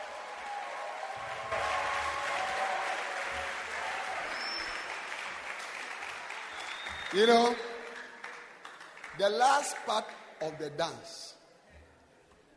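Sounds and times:
crowd applauding in praise: 0:00.0 - 0:10.2
speech: 0:07.1 - 0:07.7, 0:09.2 - 0:11.4.

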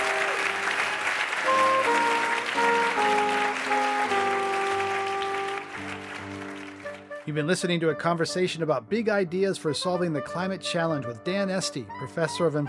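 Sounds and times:
audience applause: 0:00.0 - 0:07.2
speech: 0:07.3 - 0:12.6.

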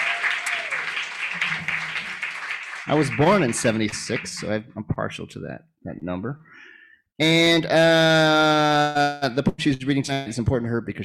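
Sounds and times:
audience applause: 0:00.0 - 0:04.6
speech: 0:02.9 - 0:11.0.

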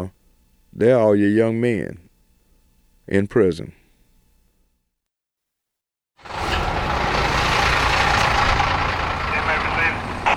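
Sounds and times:
speech: 0:00.0 - 0:02.0, 0:03.1 - 0:03.8
bus engine idling: 0:06.2 - 0:10.3.

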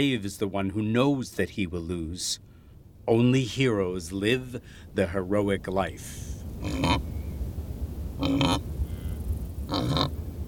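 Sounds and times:
speech: 0:00.0 - 0:02.5, 0:03.1 - 0:07.1, 0:08.2 - 0:08.7
steady low rumble: 0:01.5 - 0:10.4
grunting calls from grazing wildebeest: 0:06.6 - 0:07.0, 0:08.2 - 0:08.6, 0:09.7 - 0:10.1.

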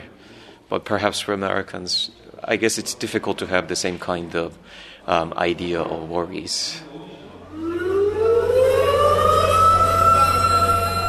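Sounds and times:
speech: 0:00.7 - 0:07.0
air raid siren wailing: 0:07.5 - 0:11.0.

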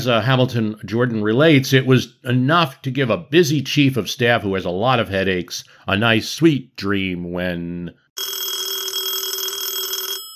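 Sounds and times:
speech: 0:00.0 - 0:08.4
telephone bell ring: 0:08.2 - 0:10.3.

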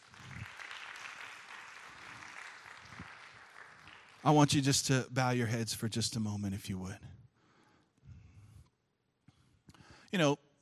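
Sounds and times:
audience applause: 0:00.0 - 0:04.6
speech: 0:04.2 - 0:07.2, 0:10.1 - 0:10.4.

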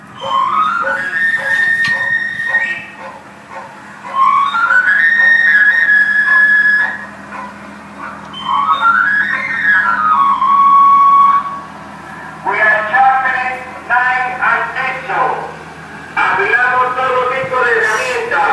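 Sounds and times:
low rumble of street noise: 0:00.0 - 0:18.5
knife sharpener's tinkly whistle music: 0:00.2 - 0:03.0, 0:04.1 - 0:07.1, 0:08.3 - 0:11.6.

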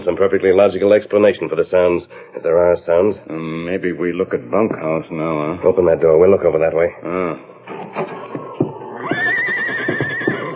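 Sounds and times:
speech: 0:00.1 - 0:08.4
horse neighing: 0:07.7 - 0:10.5.

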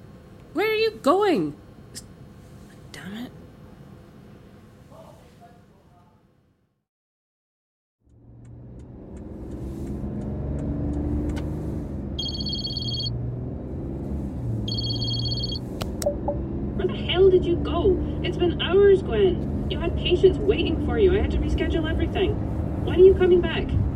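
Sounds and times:
speech: 0:00.8 - 0:01.6, 0:20.5 - 0:23.8
car engine hum: 0:08.0 - 0:23.9
electronic ringing tones: 0:12.2 - 0:13.2, 0:14.7 - 0:16.4.

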